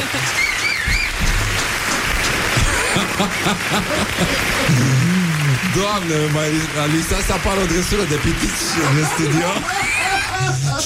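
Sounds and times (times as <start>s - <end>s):
crowd applauding: 0.0s - 10.8s
faint whistles: 0.2s - 1.3s
laughter: 2.5s - 10.8s
speech: 3.2s - 10.8s.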